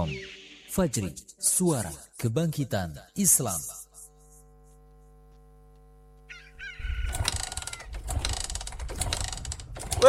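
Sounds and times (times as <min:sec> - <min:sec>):
speech: 0:00.0 - 0:03.8
motorbike engine being warmed up: 0:06.9 - 0:10.0.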